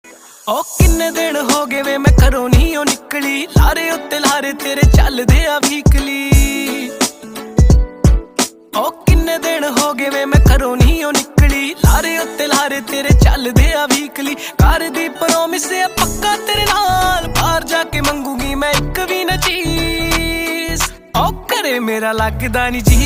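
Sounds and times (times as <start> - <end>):
Panjabi song: 0.1 - 23.0.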